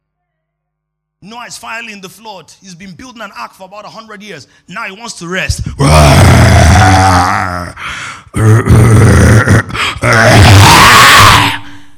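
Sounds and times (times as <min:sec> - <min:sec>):
speech: 0:01.2 - 0:06.1, 0:06.8 - 0:09.0
man imitating a lion's roar: 0:05.8 - 0:11.6.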